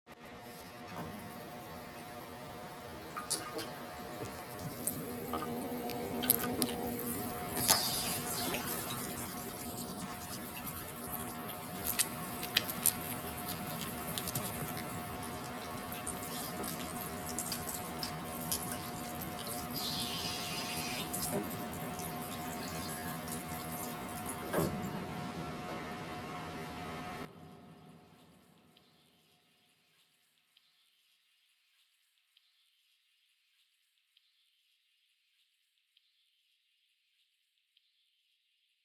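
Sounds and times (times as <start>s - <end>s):
electric fan buzzing: 0.8s - 27.3s.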